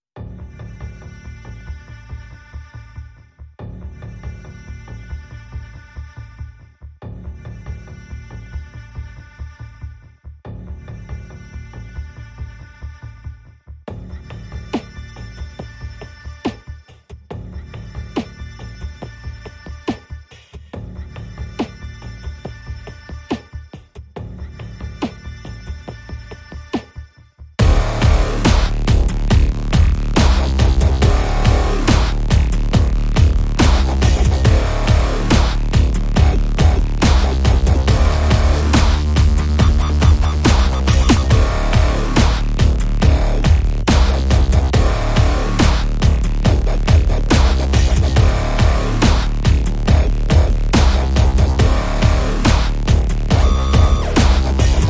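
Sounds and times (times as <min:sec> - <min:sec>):
wobbling sound: 0:27.6 - 0:54.8.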